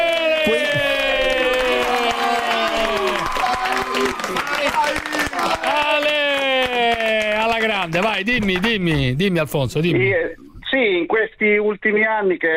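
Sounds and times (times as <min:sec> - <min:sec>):
applause and cheering: 0:00.0 - 0:09.1
speech: 0:07.8 - 0:12.5.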